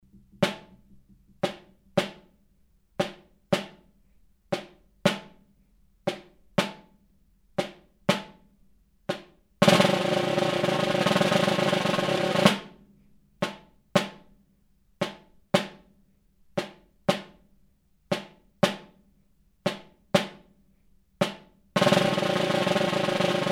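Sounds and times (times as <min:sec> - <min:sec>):
snare drum: 0:00.0 - 0:02.4, 0:03.0 - 0:03.9, 0:04.6 - 0:05.4, 0:07.6 - 0:08.4, 0:09.1 - 0:14.3, 0:16.6 - 0:17.4, 0:18.1 - 0:19.0, 0:19.7 - 0:20.5, 0:21.2 - 0:23.4.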